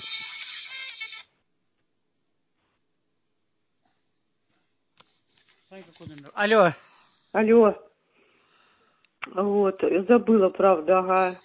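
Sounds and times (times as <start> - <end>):
phone ringing: 0.0 - 1.3
speech: 5.7 - 7.9, 9.3 - 11.4.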